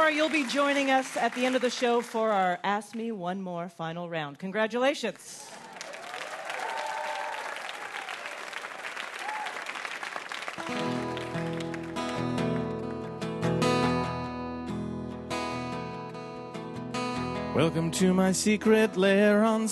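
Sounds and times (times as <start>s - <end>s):
audience applause for a performer on a quiz show: 0.0s - 2.3s, 5.4s - 13.3s
speech: 0.1s - 5.6s, 17.6s - 19.6s
music: 10.6s - 19.6s.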